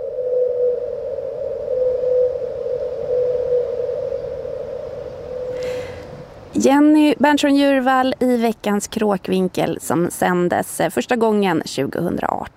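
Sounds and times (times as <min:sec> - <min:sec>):
whale song at 52 hertz: 0:00.0 - 0:06.1
speech: 0:06.6 - 0:12.5.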